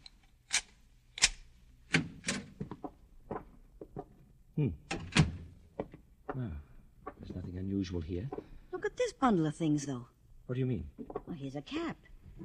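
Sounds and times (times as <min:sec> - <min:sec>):
door being unlocked and opened: 0:01.9 - 0:02.6, 0:04.9 - 0:05.5
speech: 0:04.6 - 0:04.8, 0:06.4 - 0:06.6, 0:07.6 - 0:12.1.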